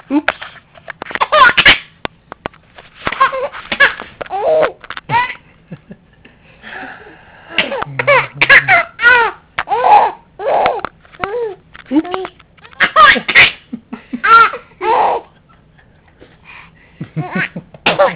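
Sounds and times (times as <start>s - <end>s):
baby laughing at home: 1.1s - 1.8s, 3.0s - 5.4s, 7.6s - 13.6s, 14.2s - 15.4s, 17.1s - 18.1s.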